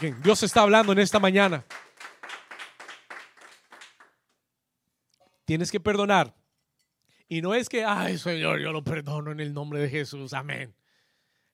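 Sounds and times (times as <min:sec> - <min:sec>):
speech: 0:00.0 - 0:01.8, 0:05.5 - 0:06.4, 0:07.3 - 0:10.8
loud audience applause: 0:00.0 - 0:04.2.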